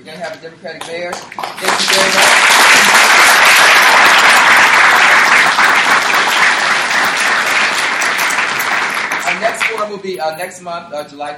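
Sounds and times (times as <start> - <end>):
speech: 0.0 - 3.6, 9.4 - 11.3
crowd applauding: 1.1 - 9.9.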